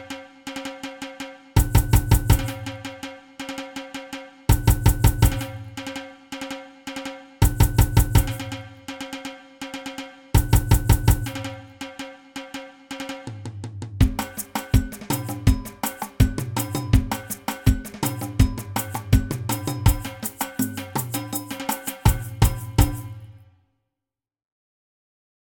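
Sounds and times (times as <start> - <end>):
samba reggae music: 0.0 - 3.6, 4.5 - 6.2, 7.4 - 9.4, 10.4 - 12.0, 14.0 - 23.2.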